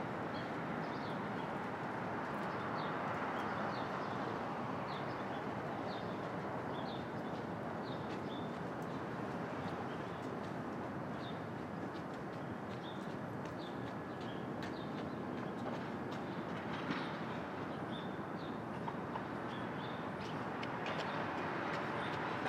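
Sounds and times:
traffic roar in Brooklyn at dawn: 0.0s - 22.4s
rail noise in Brooklyn: 5.7s - 22.4s.

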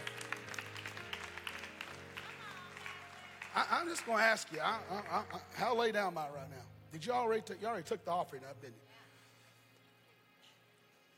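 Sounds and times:
audience clapping: 0.0s - 5.9s
speech: 3.6s - 9.0s.

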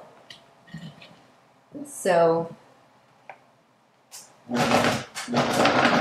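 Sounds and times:
speech: 2.0s - 2.6s
blender blending a dip: 4.6s - 5.9s.

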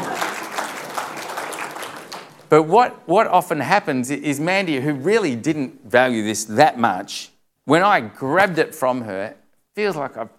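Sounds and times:
audience applause: 0.0s - 2.4s
speech: 2.5s - 10.3s.

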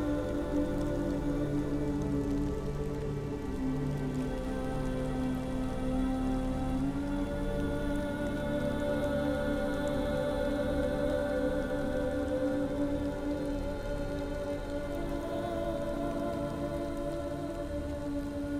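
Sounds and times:
rain falling in a forest at night: 0.0s - 18.5s.

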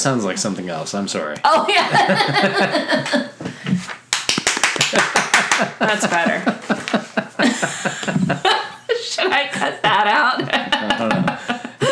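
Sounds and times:
speech: 0.0s - 3.4s, 5.6s - 11.1s
laughter: 1.5s - 3.4s, 4.9s - 11.9s
single person's light polite golf clapping: 4.1s - 6.2s.

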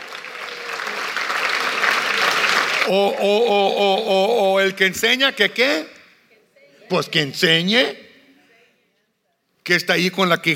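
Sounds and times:
audience applause: 0.0s - 3.5s
speech: 2.9s - 6.0s, 6.9s - 8.0s, 9.6s - 10.5s.

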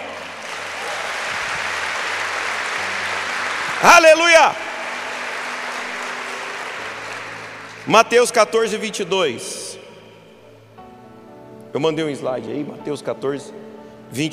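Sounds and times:
audience applause: 0.0s - 8.3s
speech: 3.8s - 4.6s, 7.9s - 9.6s, 11.8s - 14.3s.

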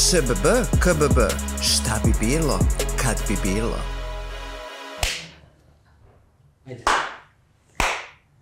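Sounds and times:
speech: 0.1s - 4.0s, 6.7s - 6.9s
hand clapping: 5.0s - 5.3s, 6.9s - 8.3s.

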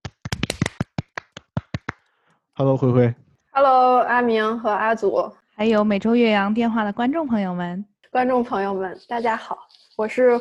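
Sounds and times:
hand clapping: 0.0s - 2.1s
speech: 2.6s - 10.4s.

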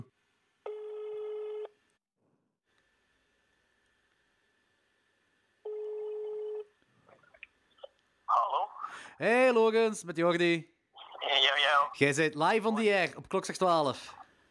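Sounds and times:
telephone ringing tone on a call line: 0.7s - 1.8s, 5.6s - 6.7s
speech: 9.1s - 10.7s, 11.9s - 14.2s.

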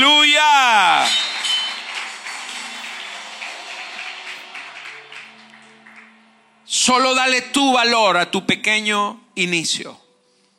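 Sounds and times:
audience applauding: 0.0s - 6.7s
speech: 6.9s - 10.0s.

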